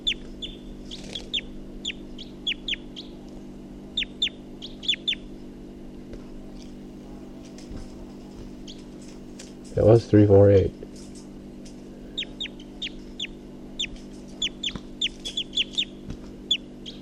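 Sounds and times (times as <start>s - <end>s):
bird calling in high-pitched chirps: 0.0s - 3.2s, 3.9s - 5.3s, 12.1s - 17.0s
low mechanical hum: 0.0s - 17.0s
speech: 9.8s - 10.8s.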